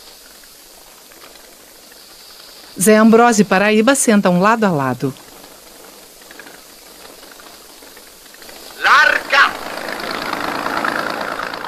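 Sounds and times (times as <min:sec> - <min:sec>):
speech: 0:02.8 - 0:05.2
motor launch engine running at sea: 0:05.4 - 0:11.6.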